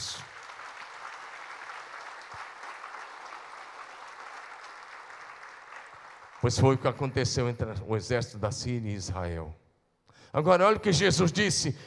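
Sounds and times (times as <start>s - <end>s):
audience applause: 0.0s - 6.7s
speech: 6.4s - 9.6s, 10.3s - 11.8s.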